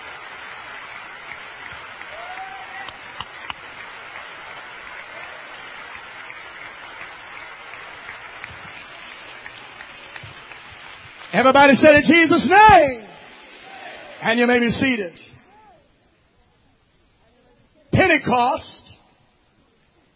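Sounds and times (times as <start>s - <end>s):
audience clapping hands: 0.0s - 15.0s
speech: 11.3s - 13.0s, 14.2s - 15.4s, 18.1s - 18.8s.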